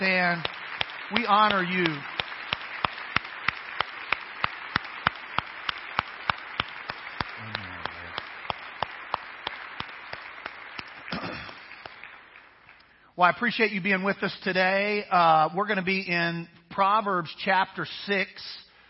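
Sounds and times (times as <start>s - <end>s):
round of applause: 0.0s - 13.0s
speech: 0.2s - 2.2s, 13.2s - 18.6s.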